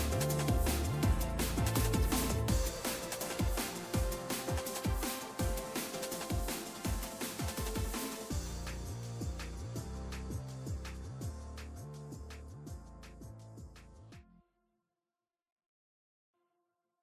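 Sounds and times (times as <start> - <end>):
battle music: 0.0 - 10.0.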